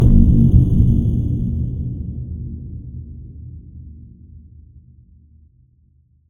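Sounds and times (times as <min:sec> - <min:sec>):
low sci-fi cinematic hit: 0:00.0 - 0:02.4.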